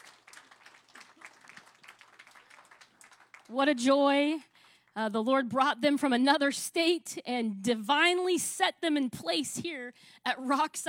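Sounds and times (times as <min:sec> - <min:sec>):
audience clapping hands: 0:00.0 - 0:05.0
speech: 0:03.5 - 0:10.8.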